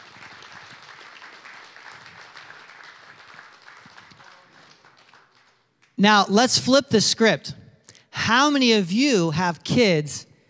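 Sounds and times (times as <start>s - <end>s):
church congregation applauding its ministry volunteers: 0.0s - 5.6s
speech: 6.0s - 7.6s, 8.3s - 10.3s.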